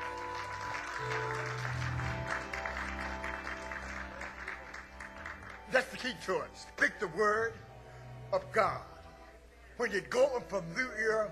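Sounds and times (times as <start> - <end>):
audience hand clapping: 0.0 - 6.8
speech: 5.7 - 7.6, 8.3 - 8.9, 9.8 - 11.2.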